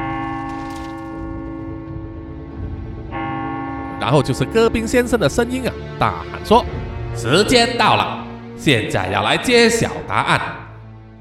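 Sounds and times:
single deep bell toll: 0.0 - 4.9
speech: 4.0 - 10.6.

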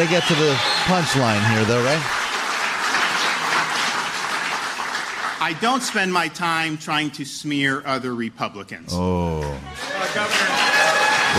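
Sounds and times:
speech: 0.0 - 2.2, 5.4 - 10.7
audience applause: 0.0 - 6.4, 9.4 - 11.3.

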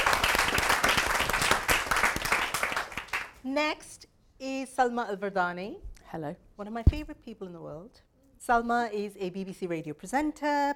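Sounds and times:
round of applause: 0.0 - 3.4
speech: 3.4 - 10.7.

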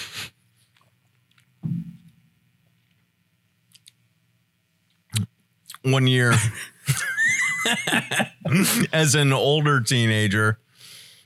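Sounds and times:
person chewing Hi-Chew candy: 3.7 - 4.0
speech: 5.8 - 7.0, 7.6 - 10.6
laughter: 6.3 - 9.1.

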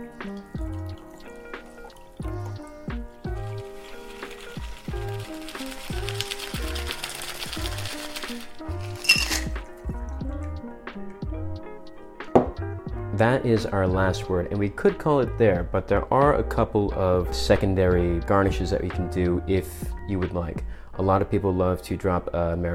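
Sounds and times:
cocktail fine strained into a chilled glass: 0.0 - 10.6
upbeat music: 0.0 - 22.7
speech: 13.2 - 22.7.

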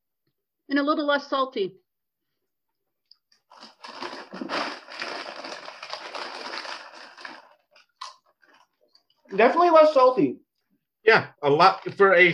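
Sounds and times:
speech: 0.7 - 1.8, 9.3 - 10.4, 11.0 - 12.3
biting and chewing a ridged lightly salted potato chip: 3.4 - 8.8.

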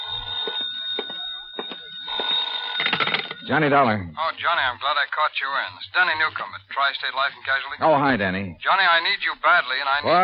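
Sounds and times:
old-fashioned telephone bell ringing: 0.0 - 4.1
speech: 3.5 - 10.2.

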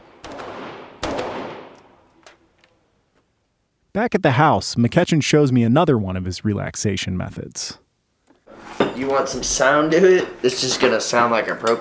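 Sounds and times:
gunshots from a magazine being emptied at a shooting range: 0.0 - 2.1
speech: 4.0 - 7.8, 9.0 - 11.7.

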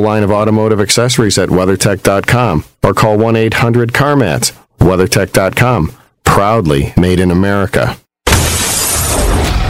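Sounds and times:
speech: 0.0 - 8.0
window pane shattering: 8.3 - 9.6.

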